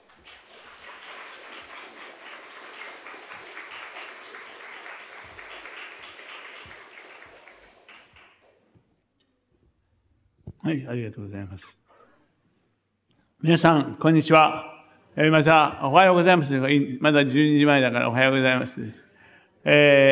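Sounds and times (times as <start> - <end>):
audience applause: 0.0 - 8.6
speech: 10.7 - 11.8, 13.4 - 19.0, 19.6 - 20.1.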